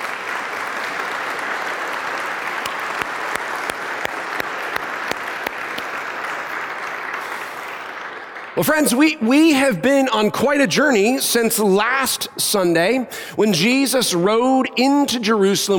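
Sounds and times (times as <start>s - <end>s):
audience applause: 0.0s - 9.5s
speech: 8.6s - 15.7s.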